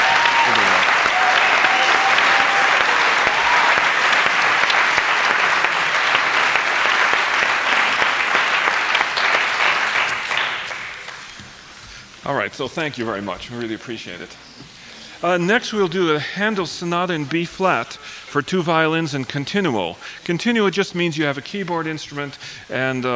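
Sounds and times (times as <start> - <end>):
audience applause: 0.0 - 11.6
speech: 12.4 - 14.6, 15.2 - 23.1.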